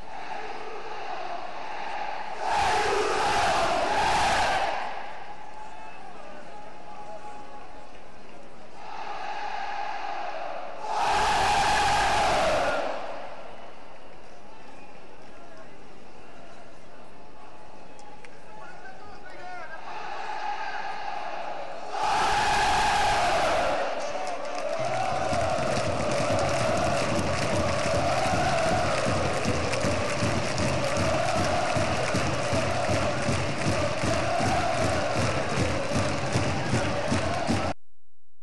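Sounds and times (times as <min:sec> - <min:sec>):
chants in Lyon: 0:00.0 - 0:05.2, 0:08.8 - 0:13.6, 0:19.8 - 0:37.8.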